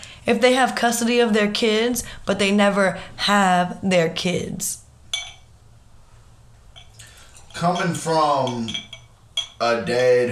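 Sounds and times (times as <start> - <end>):
low steady hum: 0.0 - 10.3
speech: 0.2 - 4.8, 7.6 - 8.9, 9.6 - 10.3
champagne glass clinking: 5.1 - 5.5, 6.7 - 10.3.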